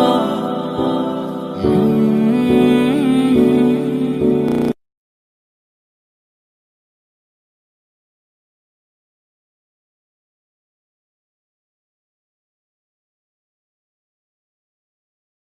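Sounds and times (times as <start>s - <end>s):
sad heart touching background music: 0.0s - 4.8s.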